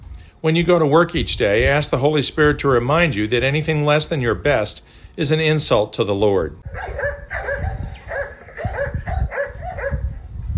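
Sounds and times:
speech: 0.4s - 7.4s
Great Dane dogs barking: 6.6s - 10.5s.

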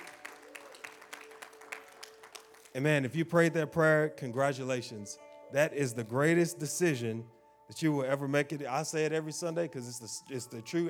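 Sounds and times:
audience hand clapping: 0.0s - 3.1s
speech: 2.8s - 10.8s.

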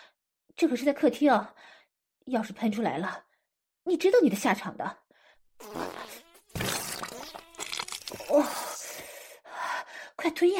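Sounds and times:
speech: 0.6s - 3.3s, 3.9s - 5.0s, 5.6s - 6.0s, 8.3s - 8.6s, 10.2s - 10.5s
fart: 5.6s - 8.2s.

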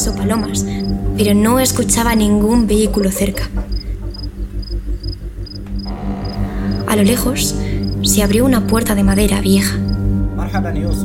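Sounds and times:
speech: 0.0s - 3.8s, 6.9s - 9.9s, 10.5s - 11.0s
crickets chirping: 0.0s - 10.3s
steady low rumble: 5.2s - 10.4s.

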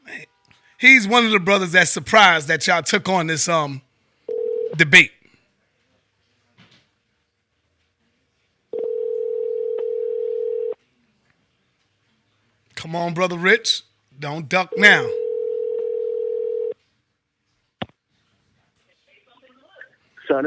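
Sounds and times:
speech: 0.2s - 3.9s, 4.8s - 5.2s, 12.8s - 15.2s, 20.3s - 20.4s
telephone ringing tone while calling in: 4.3s - 5.0s, 8.7s - 10.8s, 14.7s - 16.8s.

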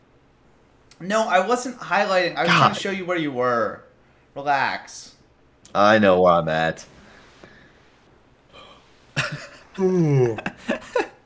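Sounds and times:
speech: 1.0s - 3.8s, 4.4s - 6.9s, 9.8s - 10.8s
person yawning: 2.5s - 2.8s.

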